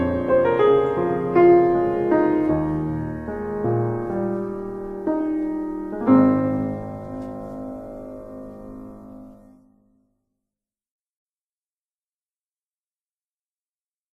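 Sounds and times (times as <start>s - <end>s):
piano: 0.0s - 10.3s.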